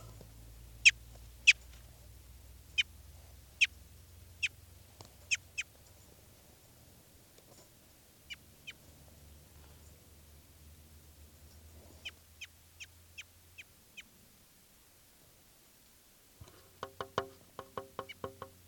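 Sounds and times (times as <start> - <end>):
crossbill chip calls while being handled: 0.8 - 1.7, 2.7 - 4.6, 5.2 - 6.0, 17.8 - 18.5.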